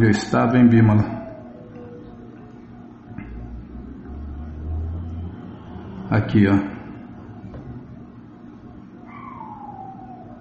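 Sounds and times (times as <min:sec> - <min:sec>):
speech: 0:00.0 - 0:01.2, 0:06.1 - 0:06.8
dog whining: 0:01.0 - 0:02.6, 0:09.0 - 0:10.3.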